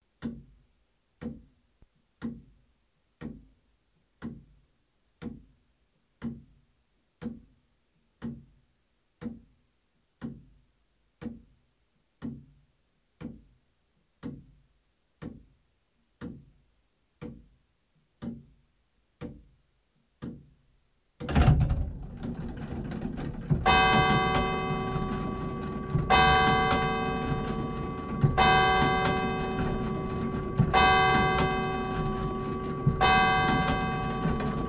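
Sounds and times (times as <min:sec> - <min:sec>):
carillon bells ringing in Jura: 0:23.7 - 0:34.6.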